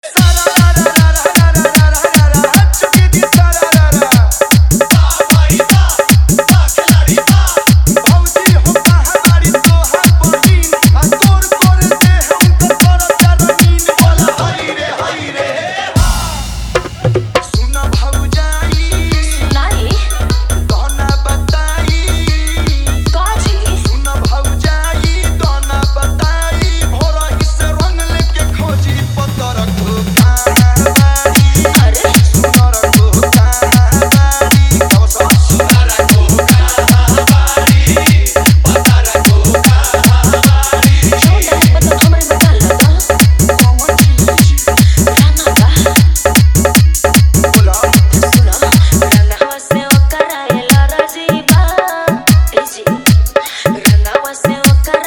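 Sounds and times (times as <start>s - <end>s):
dholak in Bhojpuri Holi music: 0.0s - 55.0s
tabla: 0.0s - 55.0s.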